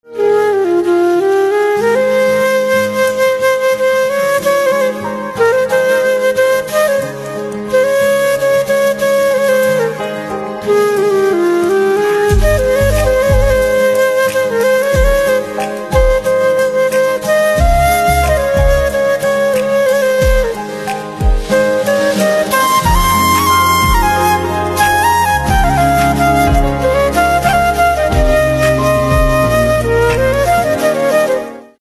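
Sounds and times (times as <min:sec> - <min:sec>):
flute instrumental ringtone: 0:00.2 - 0:31.7.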